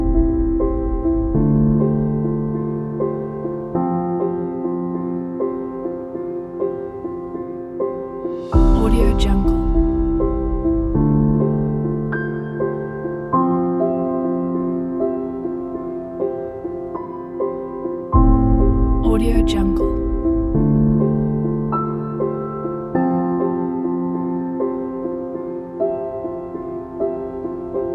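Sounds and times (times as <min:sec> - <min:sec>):
atmospheric piano: 0:00.0 - 0:27.9.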